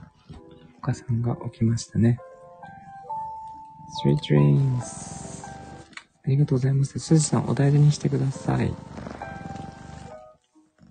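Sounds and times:
speech: 0.8 - 2.3, 4.0 - 5.2, 6.3 - 8.9
cat purring: 4.1 - 5.9, 7.1 - 10.8.

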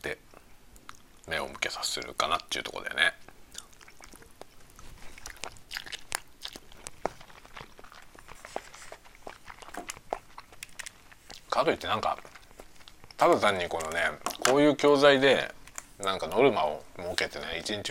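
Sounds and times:
speech: 0.0 - 0.3, 1.3 - 3.3, 11.6 - 12.3, 13.2 - 17.8
person chewing food: 0.4 - 2.6, 3.2 - 14.5.

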